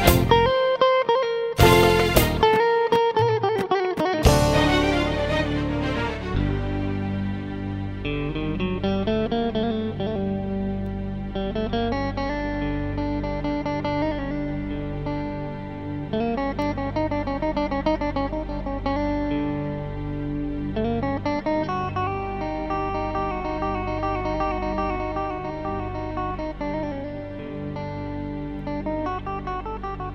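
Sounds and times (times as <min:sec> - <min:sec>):
oriental guitar: 0:00.0 - 0:30.1.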